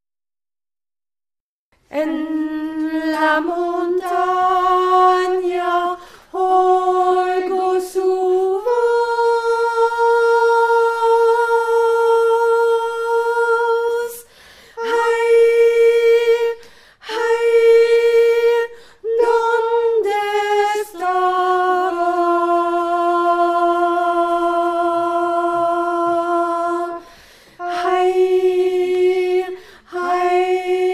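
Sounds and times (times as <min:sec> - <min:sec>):
alto singing: 0:01.9 - 0:14.2, 0:14.8 - 0:30.9.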